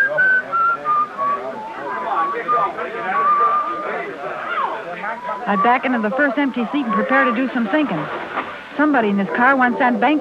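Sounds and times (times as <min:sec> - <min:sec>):
person whistling a tune: 0:00.0 - 0:03.9
speech: 0:05.4 - 0:10.1.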